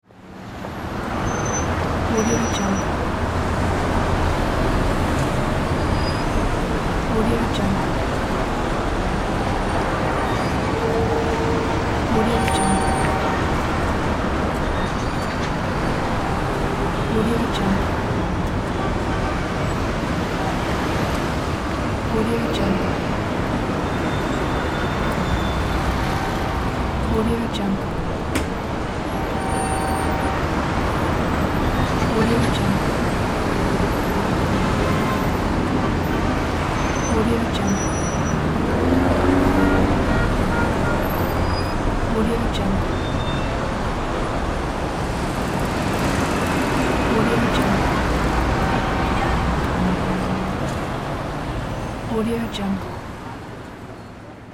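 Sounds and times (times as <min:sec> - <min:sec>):
car traffic: 0:00.0 - 0:54.5.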